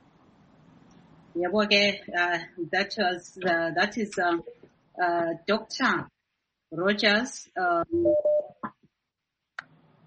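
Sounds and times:
speech: 1.4 - 8.3
electronic tones of a phone call coming in on a talk show line: 7.8 - 8.6.

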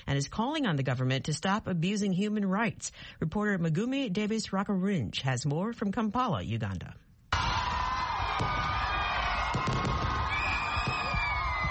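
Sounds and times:
speech: 0.0 - 7.0, 8.4 - 8.8
crowd cheering: 7.3 - 11.6
fireworks in the nighttime sky over Kampala: 7.4 - 11.6.

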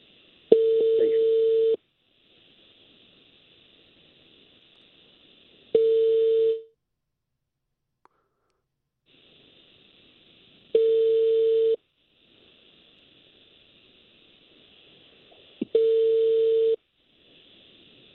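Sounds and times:
ringing tone of an outgoing mobile phone call: 0.5 - 1.8, 5.8 - 6.7, 10.8 - 11.8, 15.8 - 16.8.

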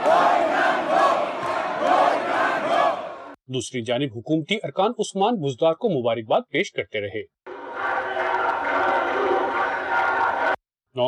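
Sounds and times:
PML-N members of the Punjab assembly chanting slogans: 0.0 - 3.4, 7.5 - 10.6
speech: 3.5 - 7.4.

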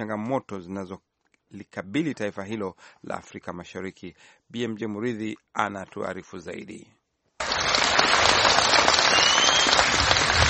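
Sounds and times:
speech: 0.0 - 7.0
residents of Kogelo village in Siaya County, Kenya clapping and cheering: 7.4 - 10.4.

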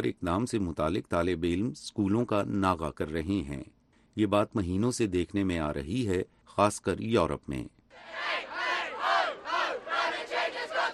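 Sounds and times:
speech: 0.0 - 8.7
young protesters chanting slogans at a climate strike in Europe: 8.0 - 10.9.

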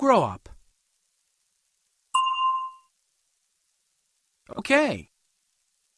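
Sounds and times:
speech: 0.0 - 0.5, 4.6 - 5.1
bell ding: 2.2 - 2.9.

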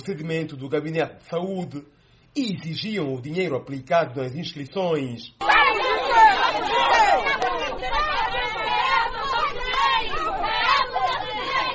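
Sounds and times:
speech: 0.0 - 5.5
protesters shouting at the gates: 5.4 - 11.7.

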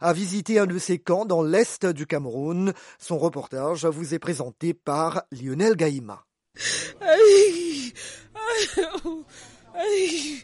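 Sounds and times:
speech: 0.0 - 10.4
woman crying: 6.6 - 10.4.

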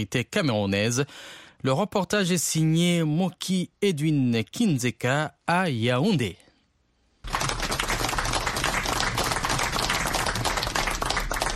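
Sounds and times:
speech: 0.0 - 6.4
crowd of ministers and RDPC activists applauding an arrival: 7.2 - 11.5.

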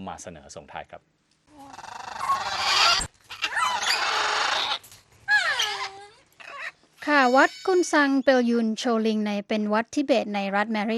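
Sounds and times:
speech: 0.0 - 1.8, 7.1 - 10.9
parrots squawking and screeching: 1.6 - 7.8.

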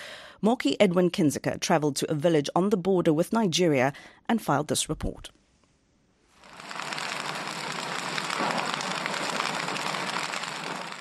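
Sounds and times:
speech: 0.4 - 5.4
campfire burning in a remote village in Cameroon: 6.4 - 11.0.

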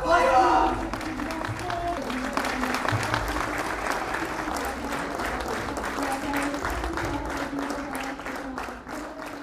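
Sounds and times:
theatre audience applauding in Kabul: 0.2 - 9.4.

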